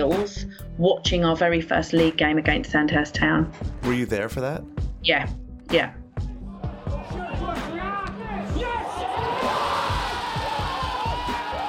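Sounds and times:
speech: 0.0 - 6.0
football crowd cheering AFC Wimbledon's first goal: 6.5 - 11.6.

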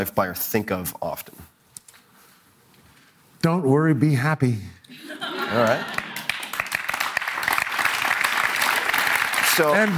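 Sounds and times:
speech: 0.0 - 1.5, 3.4 - 6.0, 9.6 - 9.9
laughter: 4.9 - 6.3
polite audience applause: 5.6 - 9.9.

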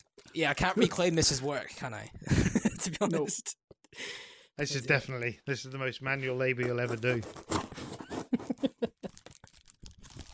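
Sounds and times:
speech: 0.4 - 7.5
laughter: 2.3 - 3.4, 8.2 - 9.1
cardboard box being opened, packaging tearing: 7.1 - 8.5, 9.1 - 10.3.

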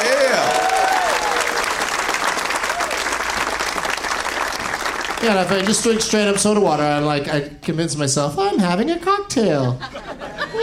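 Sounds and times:
cheers and whoops: 0.0 - 1.9, 2.6 - 3.2
audience applause: 0.0 - 6.7
speech: 5.2 - 10.6
laughter: 9.4 - 10.6.

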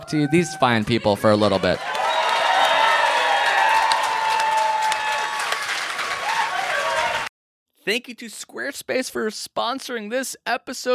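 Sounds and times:
speech: 0.1 - 2.0, 7.9 - 10.9
audience applause: 1.7 - 7.3.

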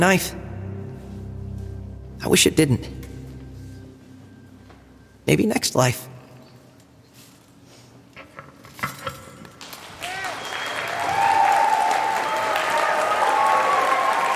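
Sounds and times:
speech: 0.0 - 0.4, 2.2 - 3.0, 5.3 - 6.1
crowd applause: 9.6 - 14.3
whistles and shouts: 10.1 - 11.6.

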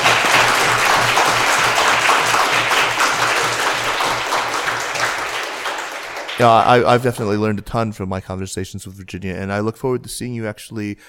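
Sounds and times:
audience applause: 0.0 - 7.3
speech: 6.4 - 11.0.

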